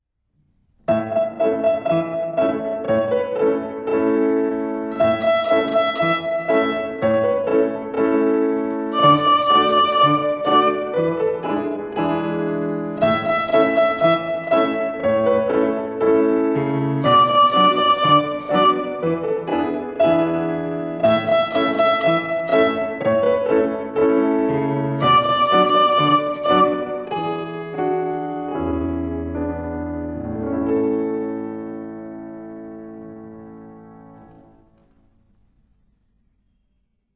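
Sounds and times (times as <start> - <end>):
violin rhythm: 1.1 - 30.4.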